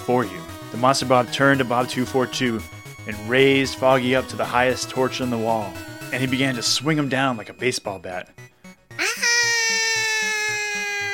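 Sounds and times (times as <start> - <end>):
speech: 0.1 - 8.4
person screaming: 9.0 - 11.1.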